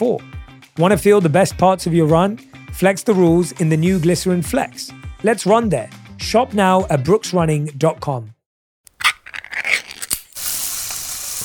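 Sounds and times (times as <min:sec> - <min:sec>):
speech: 0:00.0 - 0:08.4
Spam sizzling in a pan: 0:10.1 - 0:11.4.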